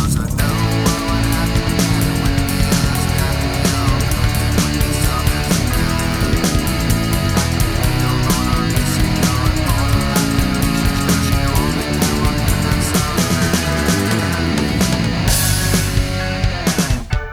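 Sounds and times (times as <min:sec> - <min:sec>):
karaoke full mix: 0:00.0 - 0:17.3.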